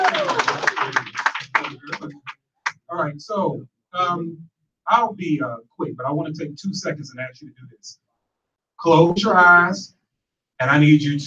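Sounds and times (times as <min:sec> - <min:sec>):
audience clapping for a speaker: 0:00.0 - 0:02.9
speech: 0:03.0 - 0:08.0, 0:08.8 - 0:10.0, 0:10.6 - 0:11.2.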